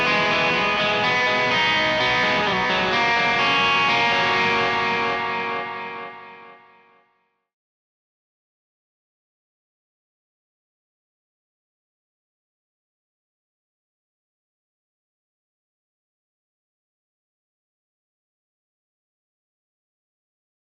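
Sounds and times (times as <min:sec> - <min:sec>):
guitar in C: 0:00.0 - 0:07.4.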